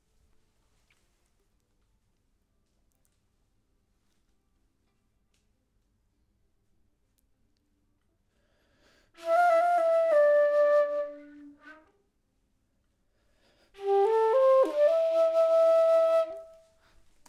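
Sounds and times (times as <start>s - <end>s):
flute: 9.2s - 12.1s, 13.8s - 17.0s.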